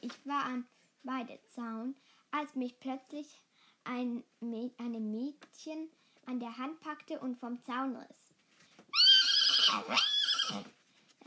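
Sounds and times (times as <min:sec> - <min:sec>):
speech: 0:00.0 - 0:08.2, 0:09.7 - 0:10.8
horse whinnying as it rears: 0:08.9 - 0:10.8.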